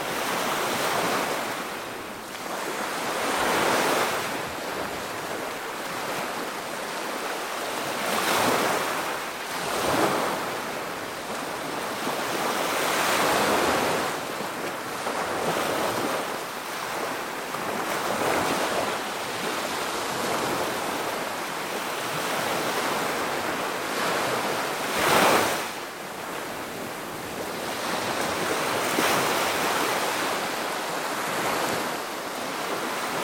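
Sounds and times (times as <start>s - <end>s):
medium waves in the ocean: 0.0s - 33.2s.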